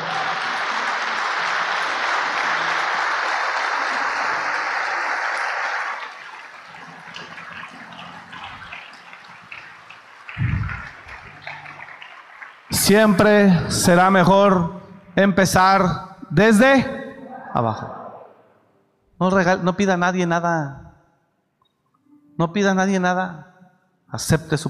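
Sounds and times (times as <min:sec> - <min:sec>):
audience applauding: 0:00.0 - 0:14.4
speech: 0:12.9 - 0:17.0, 0:17.6 - 0:18.0, 0:19.2 - 0:20.8, 0:22.4 - 0:23.5, 0:24.1 - 0:24.6.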